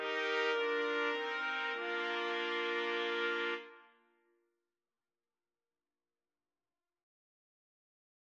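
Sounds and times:
trumpets playing: 0.0s - 3.8s.

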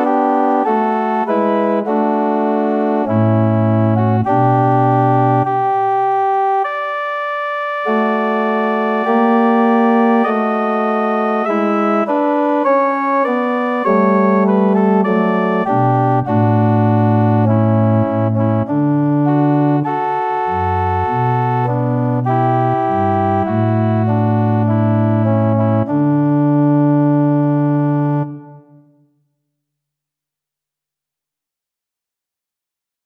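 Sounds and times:
organ playing: 0.0s - 28.8s.

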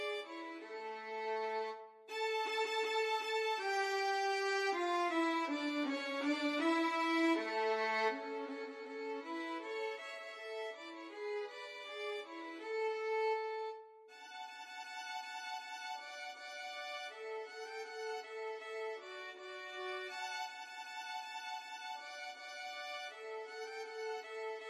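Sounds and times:
violin duet playing a march: 0.0s - 24.6s.

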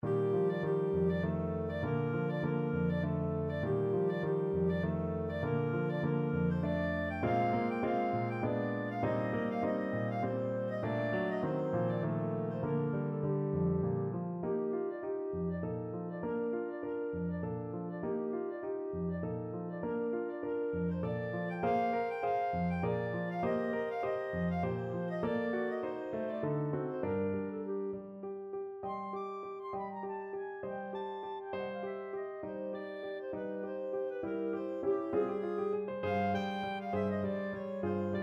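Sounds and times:
clarinet: 0.0s - 38.2s.

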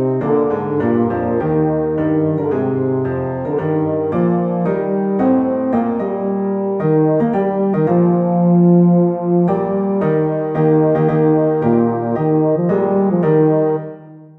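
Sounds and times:
baritone horn melody: 0.0s - 14.3s.

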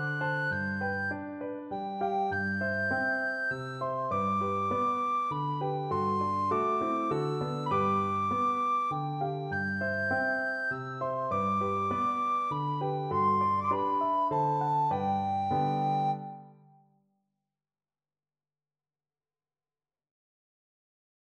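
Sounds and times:
recorder playing a lullaby: 0.0s - 16.8s.

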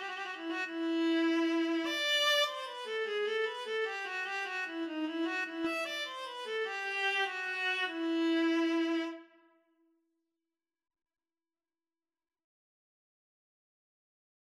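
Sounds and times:
viola duet playing a minuet: 0.0s - 9.2s.

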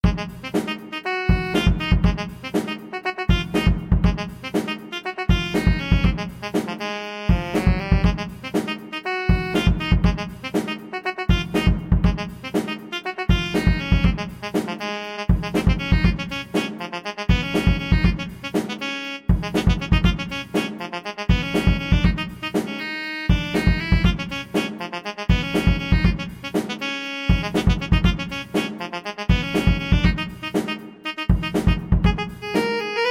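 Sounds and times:
funk study on saxophone: 0.0s - 33.1s.

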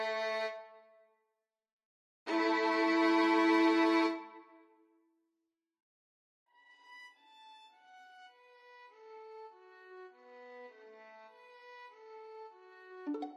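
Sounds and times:
violin duet: 0.0s - 0.6s, 2.3s - 4.3s, 8.8s - 13.3s.

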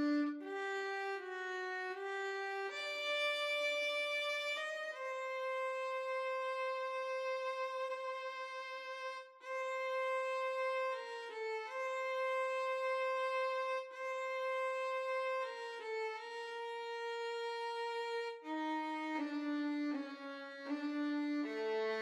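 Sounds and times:
violin and cello duet: 0.0s - 21.9s.

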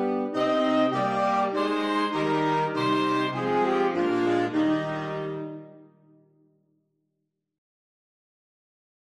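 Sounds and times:
saxophone quartet playing: 0.0s - 6.0s.

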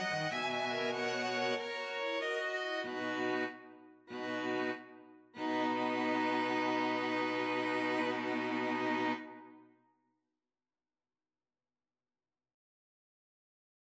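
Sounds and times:
string quartet: 0.0s - 9.6s.

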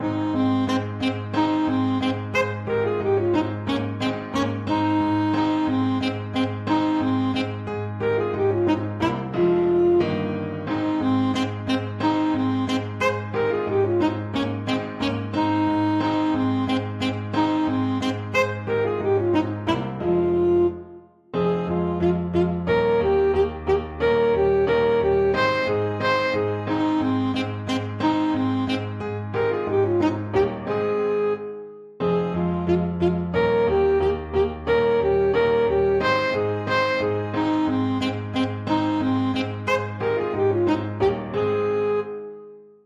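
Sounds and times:
saxophone: 0.0s - 42.8s.

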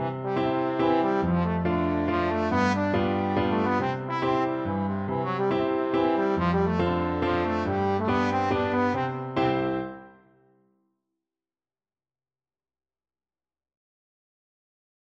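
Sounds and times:
trombone playing a kujawiak folk dance: 0.0s - 9.6s.

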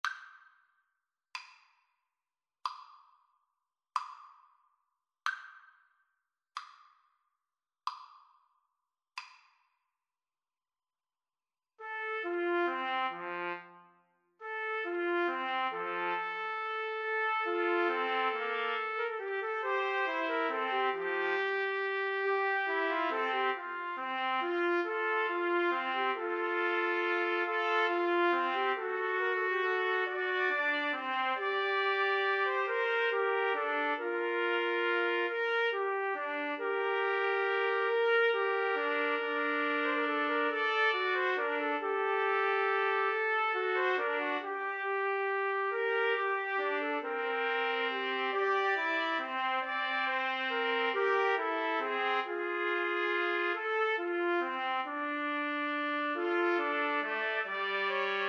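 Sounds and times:
trumpet trio: 11.8s - 13.8s, 14.4s - 58.2s.

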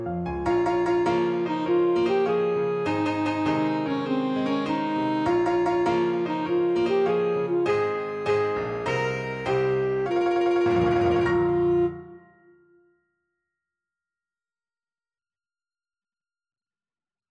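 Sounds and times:
alto saxophone: 0.7s - 12.5s.

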